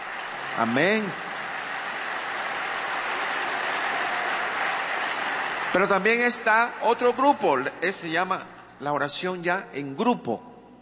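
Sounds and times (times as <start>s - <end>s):
audience applause: 0.0s - 6.6s
speech: 0.6s - 1.3s, 5.7s - 10.5s.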